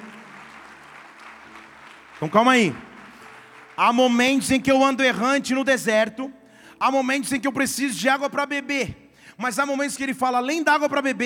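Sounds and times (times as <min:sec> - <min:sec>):
crowd clapping: 0:00.0 - 0:05.5
speech: 0:02.2 - 0:02.9, 0:03.8 - 0:11.2.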